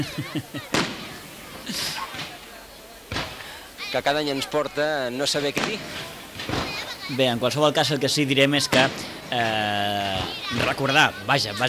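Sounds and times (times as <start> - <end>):
speech: 0.0 - 1.0, 1.7 - 1.9, 3.9 - 11.6
laughter: 0.0 - 3.9
hissing crackling firework burst: 0.0 - 11.6
firework bang: 0.7 - 2.4, 3.1 - 3.6, 5.5 - 7.0, 8.7 - 10.6.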